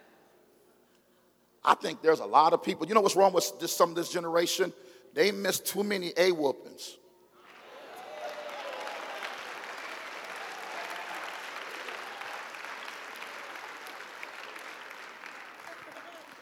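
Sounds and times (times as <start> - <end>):
speech: 1.6 - 7.0
audience clapping: 7.4 - 16.4.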